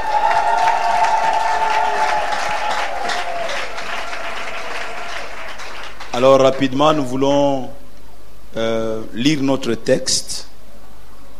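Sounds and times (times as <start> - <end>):
church congregation cheering: 0.0 - 5.8
church congregation clapping to acclaim God: 0.0 - 6.9
speech: 6.2 - 7.8, 8.5 - 10.3.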